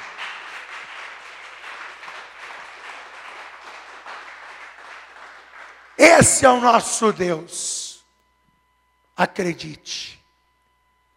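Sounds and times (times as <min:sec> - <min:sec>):
audience applauding: 0:00.0 - 0:06.8
speech: 0:06.0 - 0:07.8, 0:09.2 - 0:10.2.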